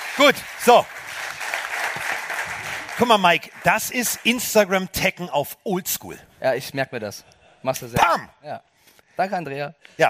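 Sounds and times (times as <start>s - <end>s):
crowd applauding: 0.0s - 5.0s
speech: 0.2s - 1.0s, 3.0s - 10.0s.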